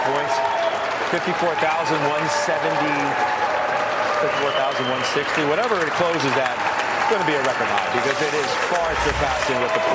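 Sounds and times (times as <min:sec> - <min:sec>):
clapping on trading floor at closing bell: 0:00.0 - 0:09.9
speech: 0:01.1 - 0:03.5, 0:04.2 - 0:09.9
indistinct voices and chatter: 0:07.6 - 0:09.9.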